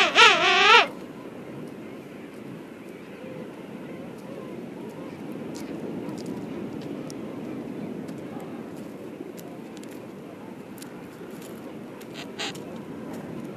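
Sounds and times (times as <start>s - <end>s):
king penguin trumpeting call: 0.0s - 0.9s, 12.1s - 12.6s.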